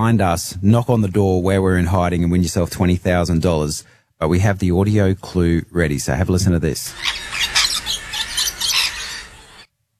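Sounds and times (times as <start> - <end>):
speech: 0.0 - 7.6
rainbow lorikeet screeching: 6.9 - 9.7.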